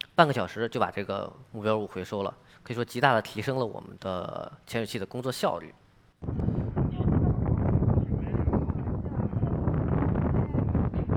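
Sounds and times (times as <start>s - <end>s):
speech: 0.2s - 6.5s
wind noise in recorded video: 6.2s - 11.1s.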